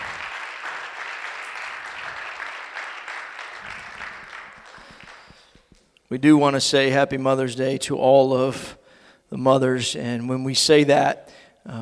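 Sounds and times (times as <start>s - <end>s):
church audience applause: 0.0s - 5.6s
speech: 6.1s - 11.8s.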